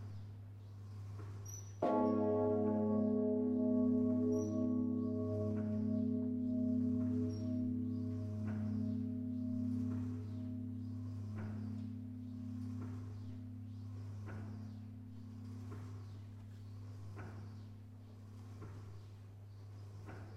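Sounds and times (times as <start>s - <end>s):
great bourdon death knell bell: 1.8s - 15.9s.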